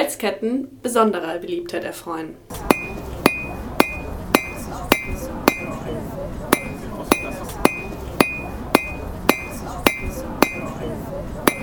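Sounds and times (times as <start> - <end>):
speech: 0.2 - 2.8
blacksmith's hammer striking metal: 2.5 - 5.8, 6.5 - 10.8, 11.5 - 11.6
murmur of voices: 2.5 - 11.6.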